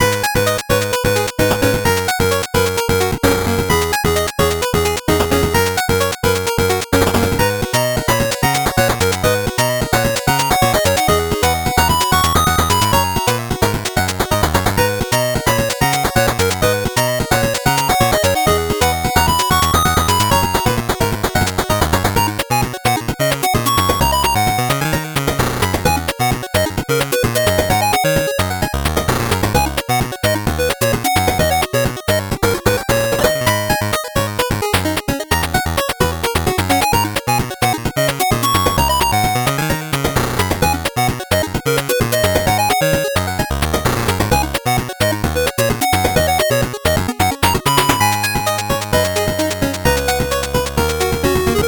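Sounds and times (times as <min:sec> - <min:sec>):
8-bit background music: 0:00.0 - 0:51.6.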